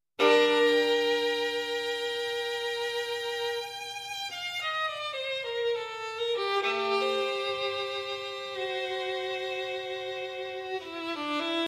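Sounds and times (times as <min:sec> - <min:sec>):
violin: 0:00.2 - 0:11.6.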